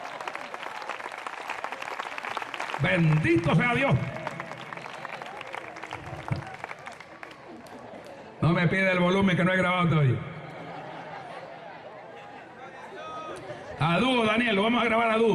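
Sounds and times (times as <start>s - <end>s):
audience applause: 0.0s - 8.4s
speech: 2.8s - 4.2s, 8.5s - 10.3s, 13.8s - 15.3s
laughter: 5.2s - 8.4s, 10.4s - 14.5s.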